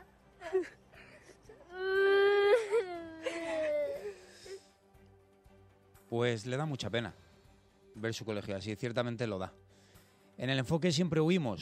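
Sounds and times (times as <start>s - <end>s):
speech: 0.5s - 0.8s, 6.1s - 7.2s, 8.0s - 9.6s, 10.4s - 11.5s
baby crying: 1.6s - 4.6s.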